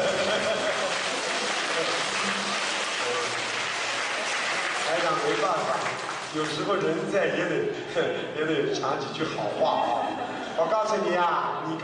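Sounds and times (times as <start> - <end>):
laughter: 0.0 - 3.4, 6.6 - 11.0
audience applause: 0.0 - 6.8
speech: 5.4 - 11.8.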